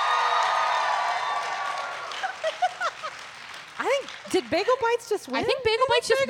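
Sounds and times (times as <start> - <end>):
audience cheering: 0.0 - 3.2
speech: 4.3 - 6.2.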